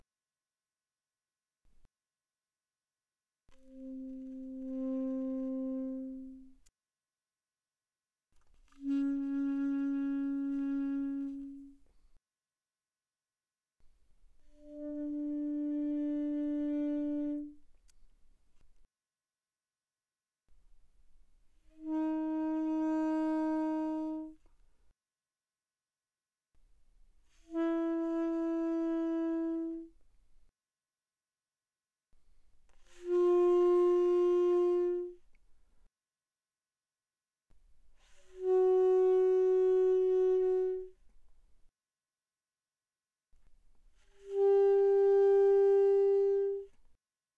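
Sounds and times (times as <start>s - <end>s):
alto saxophone notes without vibrato played pianissimo: 3.6s - 6.7s, 8.7s - 11.9s, 14.5s - 17.6s, 21.7s - 24.4s, 27.4s - 29.9s, 32.8s - 35.2s, 38.0s - 41.0s, 44.1s - 46.8s.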